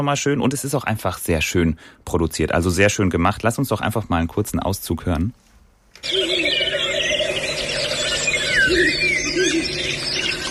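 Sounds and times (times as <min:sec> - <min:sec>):
speech: 0:00.0 - 0:06.6
Ural owl calling with shrill squealing cries: 0:06.0 - 0:10.4
chorus of chirping birds: 0:06.0 - 0:10.4.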